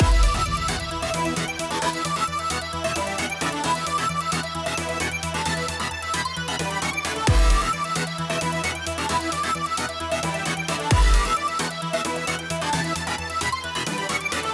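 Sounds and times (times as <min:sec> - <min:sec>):
hard cyber music intro: 0:00.0 - 0:14.5.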